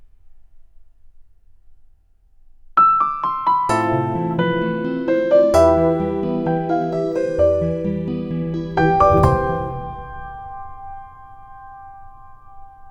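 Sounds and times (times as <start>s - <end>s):
piano: 2.8s - 12.9s.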